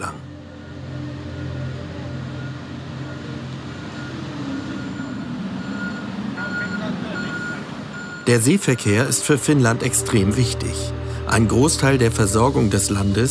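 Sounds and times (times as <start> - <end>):
vehicles rumbling while a cargo ferry is loaded: 0.0 - 13.3
vehicle reversing beeps: 2.3 - 9.0
speech: 8.3 - 13.3.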